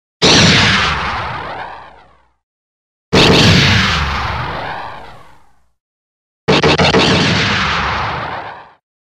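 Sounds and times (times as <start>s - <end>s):
blaster shot: 0.2s - 2.4s, 3.1s - 5.6s, 6.5s - 8.8s.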